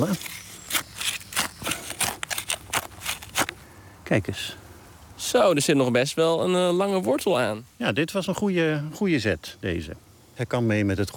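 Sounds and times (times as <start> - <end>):
speech: 0.0 - 0.4, 4.1 - 4.6, 5.2 - 11.1
scissors snipping the stem of a small hogweed plant: 0.0 - 3.6.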